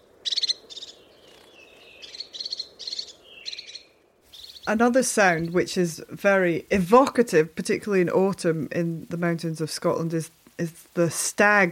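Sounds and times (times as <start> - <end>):
crested tit calls: 0.0 - 6.6
speech: 4.7 - 11.7.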